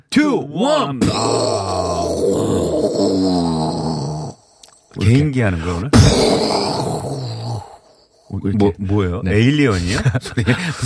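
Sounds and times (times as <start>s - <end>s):
speech: 0.1s - 3.9s, 5.0s - 7.3s, 8.3s - 10.8s
voice imitating a blasting explosion: 1.0s - 4.5s, 5.8s - 8.0s
laughter: 9.7s - 10.8s.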